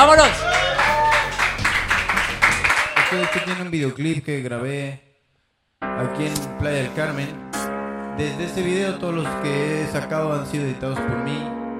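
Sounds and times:
audience applause: 0:00.0 - 0:03.7
speech: 0:03.7 - 0:05.1, 0:05.9 - 0:07.6, 0:08.2 - 0:11.6.

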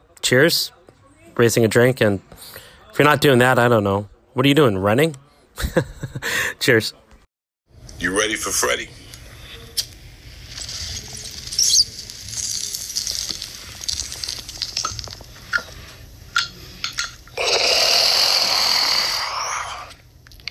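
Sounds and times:
speech: 0:00.3 - 0:00.8, 0:01.4 - 0:07.0, 0:08.0 - 0:09.0
bong hit bubbling: 0:10.4 - 0:20.4.

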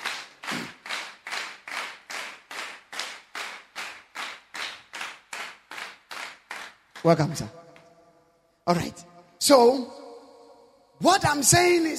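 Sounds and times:
audience clapping in a steady rhythm: 0:00.0 - 0:07.5
speech: 0:07.0 - 0:07.6, 0:08.7 - 0:10.0, 0:11.0 - 0:11.9.

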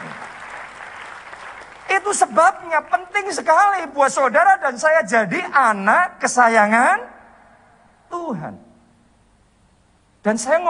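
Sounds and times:
audience applauding: 0:00.0 - 0:02.7
speech: 0:02.0 - 0:07.2, 0:08.1 - 0:08.6, 0:10.2 - 0:10.6.

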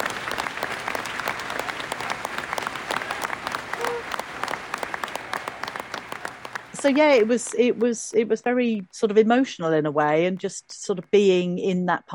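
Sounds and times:
huge ripple of crowd applause: 0:00.0 - 0:07.9
speech: 0:06.8 - 0:12.1.

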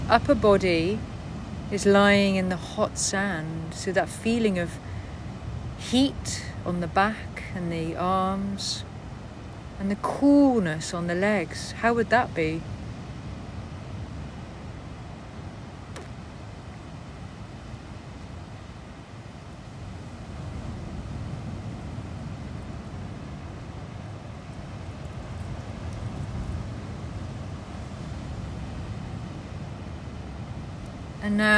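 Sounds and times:
sea waves: 0:00.0 - 0:31.5
speech: 0:00.1 - 0:01.1, 0:01.7 - 0:04.9, 0:05.8 - 0:08.9, 0:09.8 - 0:12.8, 0:31.3 - 0:31.5.

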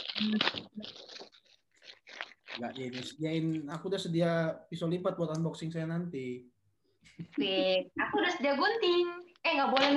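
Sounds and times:
small packet tearing open: 0:00.0 - 0:03.4
speech: 0:00.2 - 0:01.1, 0:02.6 - 0:09.9.

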